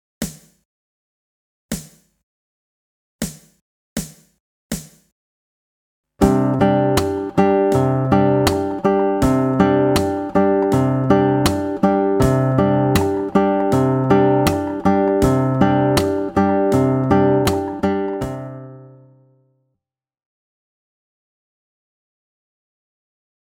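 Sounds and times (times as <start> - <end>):
slow thumb slap on fifth string: 6.2 - 18.7.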